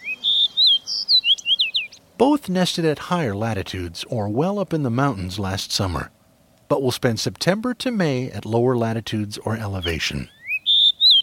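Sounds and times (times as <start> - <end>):
Fox sparrow song: 0.0 - 2.3, 9.1 - 11.2
speech: 2.2 - 10.4.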